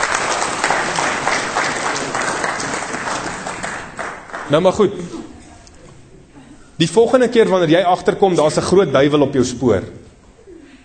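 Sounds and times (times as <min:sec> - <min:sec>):
audience applause: 0:00.0 - 0:04.8
speech: 0:04.5 - 0:05.2, 0:06.8 - 0:10.0.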